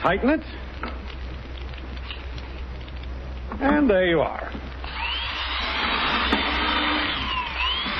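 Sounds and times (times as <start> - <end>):
speech: 0.0 - 1.0, 3.6 - 4.7
electric drill drilling through a board: 4.8 - 7.9.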